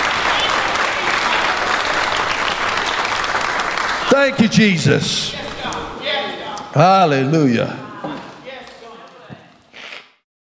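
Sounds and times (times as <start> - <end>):
audience clapping: 0.0 - 6.0
speech: 4.2 - 5.4, 6.8 - 7.8.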